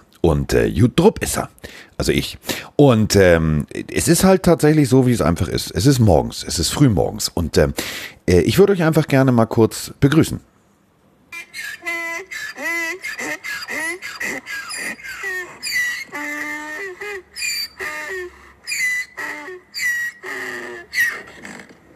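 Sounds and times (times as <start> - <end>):
speech: 0.2 - 10.5
donkeys braying in a garden: 11.4 - 21.9.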